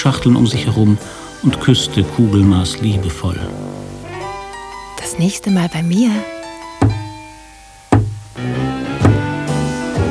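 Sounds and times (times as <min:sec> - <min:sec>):
speech: 0:00.0 - 0:03.7, 0:05.1 - 0:06.4
sharp knocks on a wooden wardrobe: 0:06.8 - 0:07.2, 0:07.9 - 0:08.4, 0:09.0 - 0:09.4.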